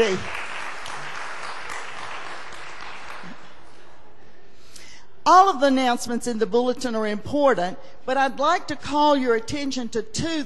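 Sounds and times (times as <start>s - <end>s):
speech: 0.0s - 0.4s, 5.3s - 10.4s
audience applause: 0.0s - 3.9s.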